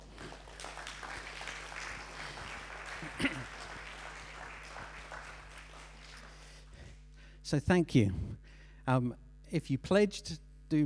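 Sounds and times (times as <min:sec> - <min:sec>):
audience clapping: 0:00.0 - 0:07.1
speech: 0:07.5 - 0:10.8.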